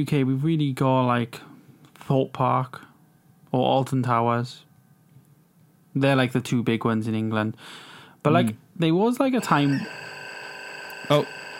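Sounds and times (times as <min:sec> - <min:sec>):
speech: 0:00.0 - 0:01.5, 0:02.1 - 0:02.9, 0:03.5 - 0:04.7, 0:06.0 - 0:10.1, 0:11.1 - 0:11.4
phone alarm going off: 0:09.4 - 0:11.5.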